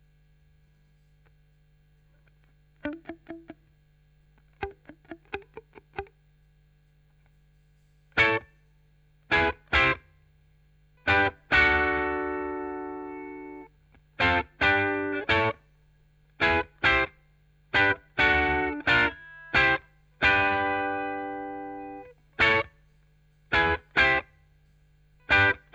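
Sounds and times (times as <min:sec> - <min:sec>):
chorus effect guitar: 0:00.0 - 0:25.7.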